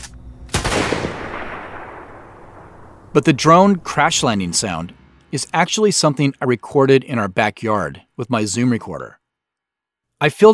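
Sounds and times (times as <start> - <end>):
rifle shot: 0.0 - 3.9
quiet hiss: 0.0 - 10.2
speech: 3.1 - 9.2, 10.2 - 10.5.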